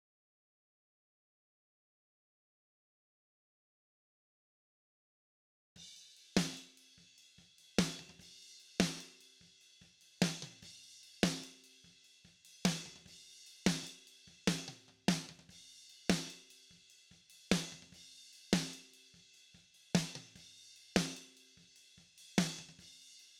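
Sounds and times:
snare drum: 0:06.4 - 0:06.8, 0:07.7 - 0:08.2, 0:08.8 - 0:09.2, 0:10.2 - 0:11.6, 0:12.6 - 0:15.5, 0:16.1 - 0:16.5, 0:17.5 - 0:18.0, 0:18.6 - 0:18.9, 0:19.9 - 0:20.4, 0:21.0 - 0:21.4, 0:22.4 - 0:22.8.

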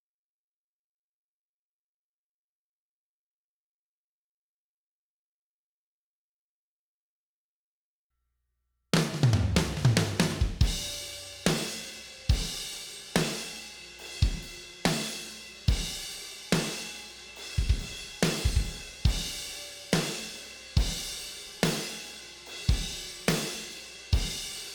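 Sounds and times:
drums: 0:09.0 - 0:24.7.

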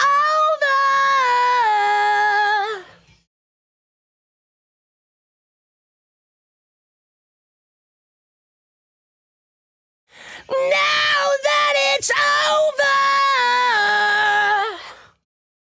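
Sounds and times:
lead vocals: 0:00.0 - 0:03.1, 0:10.2 - 0:15.1.

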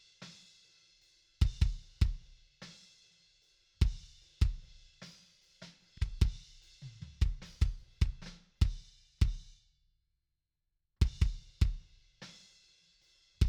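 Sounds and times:
kick drum: 0:01.4 - 0:02.3, 0:03.8 - 0:04.8, 0:06.0 - 0:09.5, 0:11.0 - 0:11.9.

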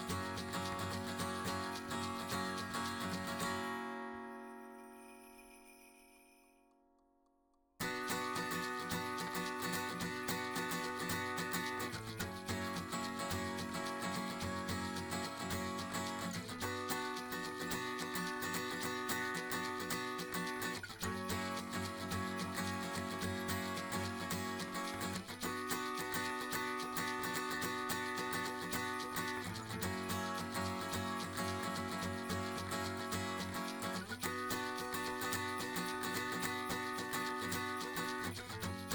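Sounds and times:
acoustic percussion: 0:00.0 - 0:06.3, 0:07.8 - 0:38.9.

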